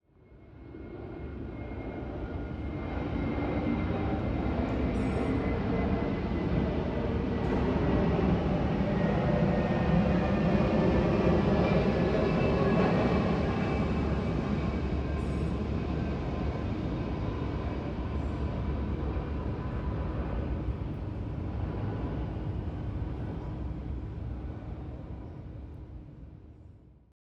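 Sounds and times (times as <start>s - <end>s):
plane: 0.0s - 27.1s.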